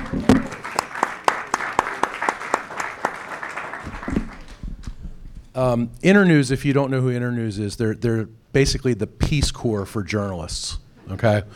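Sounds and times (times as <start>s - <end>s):
audience applause: 0.0s - 4.7s
speech: 5.6s - 11.5s.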